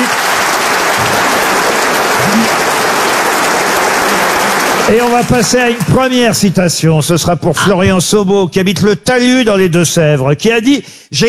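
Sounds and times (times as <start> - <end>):
studio audience applause: 0.0 - 6.8
speech: 4.9 - 11.2.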